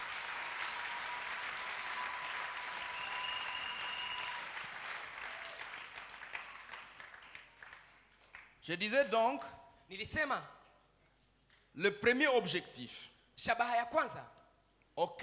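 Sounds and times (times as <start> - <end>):
church congregation applauding during a sermon: 0.0 - 8.7
speech: 8.7 - 10.6, 11.8 - 14.4, 15.0 - 15.2.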